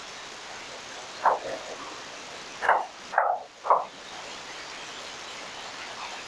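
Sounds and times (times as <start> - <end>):
series of knocks: 2.6 - 4.0.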